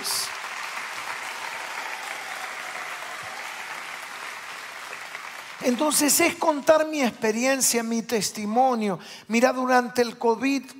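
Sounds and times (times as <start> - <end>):
crowd clapping: 0.0 - 6.9
speech: 5.6 - 10.7.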